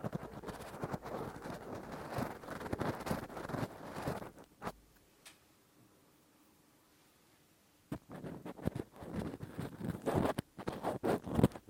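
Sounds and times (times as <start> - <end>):
rough deep ear cleaning scratching with a Q-tip and ear pick: 0.0 - 4.8, 7.9 - 11.6.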